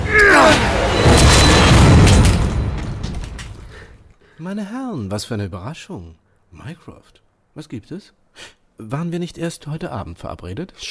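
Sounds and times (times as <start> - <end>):
door forced open with booming crash: 0.0 - 3.8
speech: 4.4 - 10.8.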